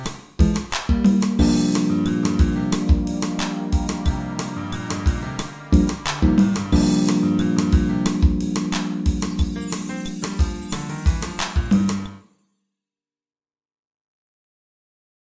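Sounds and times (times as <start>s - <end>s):
fretless bass groove: 0.0s - 12.2s.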